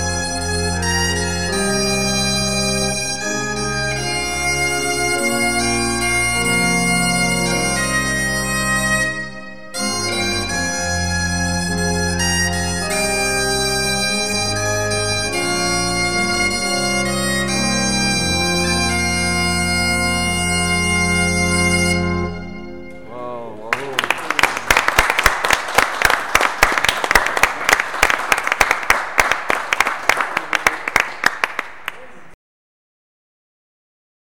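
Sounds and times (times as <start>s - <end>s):
bombarde playing: 0.0s - 25.4s
organs playing: 0.0s - 31.6s.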